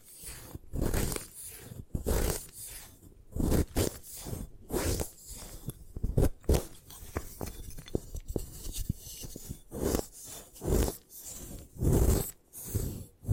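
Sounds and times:
gym chalk crushed and broken apart: 0:00.0 - 0:13.3.

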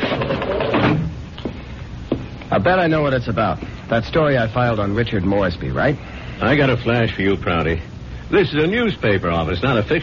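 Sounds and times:
office door being shut: 0:00.0 - 0:01.2
speech: 0:02.5 - 0:10.0.

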